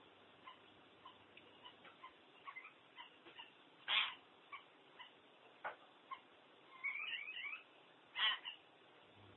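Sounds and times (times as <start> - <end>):
common hill myna squawking: 0.5 - 5.1, 6.1 - 8.7.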